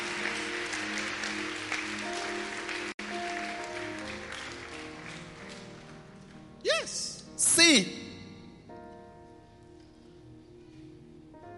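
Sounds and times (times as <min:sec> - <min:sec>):
audience clapping: 0:00.0 - 0:06.5
speech: 0:07.6 - 0:08.0.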